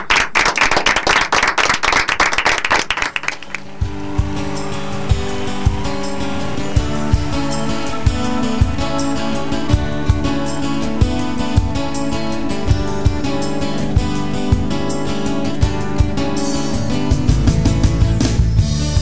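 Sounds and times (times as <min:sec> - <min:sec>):
audience applause: 0:00.0 - 0:03.7
steady music with a regular beat: 0:03.4 - 0:19.0.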